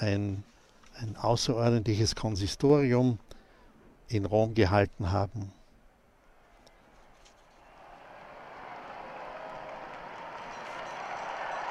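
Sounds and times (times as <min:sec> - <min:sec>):
speech: 0:00.0 - 0:03.4, 0:04.1 - 0:05.6
large crowd cheering and applauding: 0:07.6 - 0:11.7.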